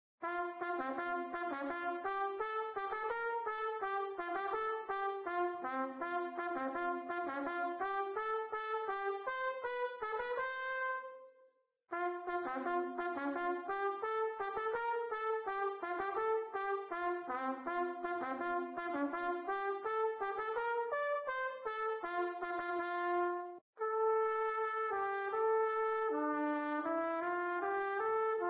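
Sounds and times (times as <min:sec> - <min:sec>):
trumpet: 0:00.2 - 0:28.4.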